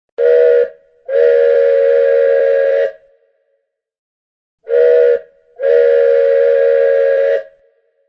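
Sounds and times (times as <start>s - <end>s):
train horn tooting: 0.2s - 3.2s, 4.7s - 7.8s.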